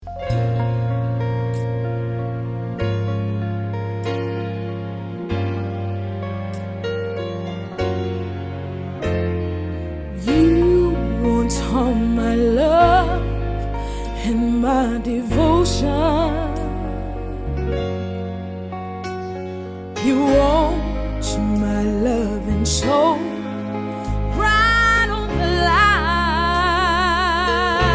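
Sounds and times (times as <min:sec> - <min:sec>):
jazz lyrical solo music: 0:00.0 - 0:27.9.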